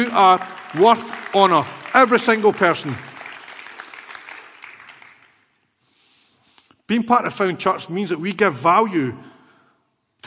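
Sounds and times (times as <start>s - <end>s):
speech: 0.0s - 3.1s, 6.9s - 9.3s
crowd of people clapping in a reverberant room: 0.0s - 5.6s.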